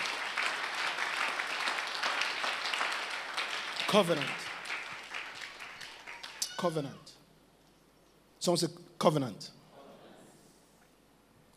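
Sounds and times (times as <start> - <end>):
crowd clapping: 0.0 - 6.8
speech: 3.9 - 4.4, 6.6 - 7.1, 8.4 - 9.6.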